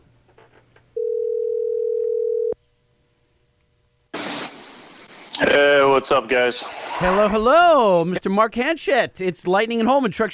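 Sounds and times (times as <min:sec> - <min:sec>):
telephone dial tone while placing a call: 0:01.0 - 0:02.6
harsh static hiss: 0:04.1 - 0:08.2
speech: 0:05.5 - 0:10.3.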